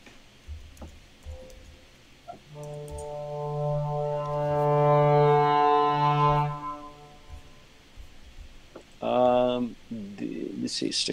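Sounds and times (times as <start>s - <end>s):
low woodwinds crescendo: 1.2s - 8.6s
speech: 10.8s - 11.1s.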